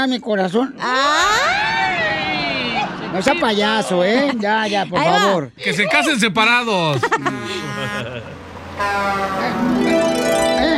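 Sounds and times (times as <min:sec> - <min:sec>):
speech: 0:00.0 - 0:01.3, 0:03.1 - 0:10.7
laughter: 0:01.1 - 0:06.2, 0:06.8 - 0:08.5
car horn honking: 0:07.1 - 0:10.6.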